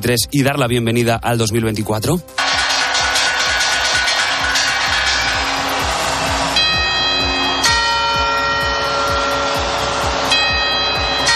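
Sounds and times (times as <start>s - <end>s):
speech: 0.0s - 2.6s
rhythmic low thumping: 0.0s - 11.3s
clock tower bell strikes: 2.4s - 11.3s
clock tower carillon chiming: 2.4s - 11.3s.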